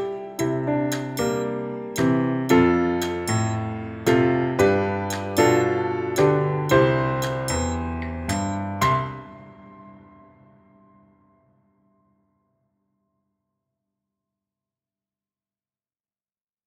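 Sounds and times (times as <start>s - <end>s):
piano: 0.0s - 12.8s.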